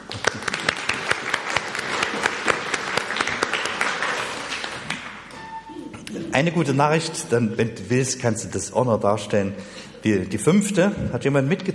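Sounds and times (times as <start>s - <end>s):
audience clapping: 0.0s - 5.3s
speech: 6.4s - 11.7s.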